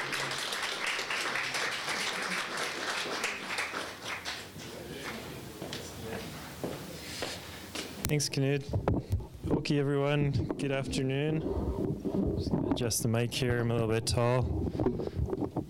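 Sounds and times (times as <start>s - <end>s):
audience applause welcoming a speaker at a public forum in Lethbridge: 0.0s - 6.0s
speech: 8.1s - 15.0s.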